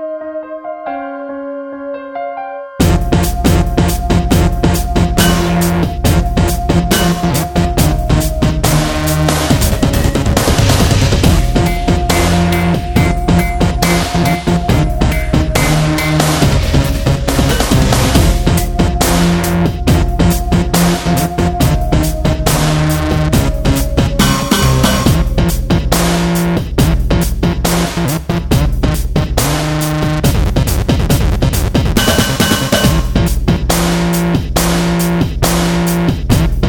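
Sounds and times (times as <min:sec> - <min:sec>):
dubstep music: 0:02.8 - 0:36.6.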